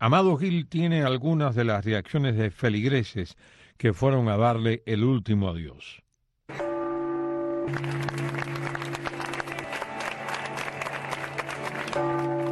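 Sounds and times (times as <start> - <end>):
speech: 0.0 - 6.6, 7.7 - 9.5
cathedral bells ringing: 6.5 - 12.5
large crowd applause: 7.7 - 12.5.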